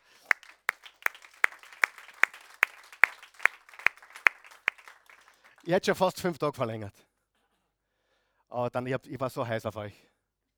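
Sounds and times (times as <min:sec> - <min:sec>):
audience applause: 0:00.0 - 0:05.9
speech: 0:05.6 - 0:07.1, 0:08.5 - 0:10.1.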